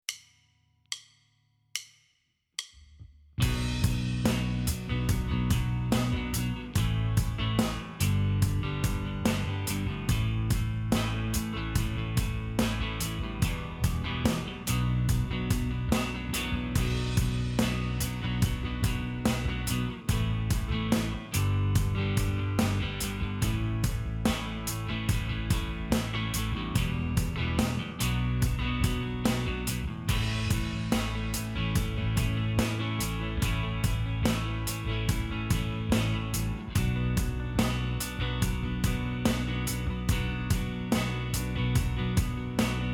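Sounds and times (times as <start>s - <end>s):
improvised rock ballad: 3.4s - 42.9s.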